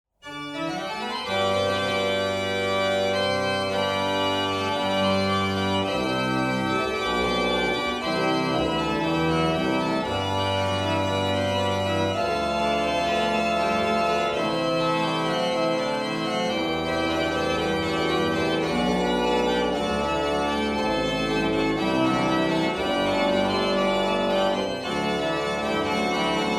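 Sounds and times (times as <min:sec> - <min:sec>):
organ praeambulum in F: 0:00.2 - 0:26.5.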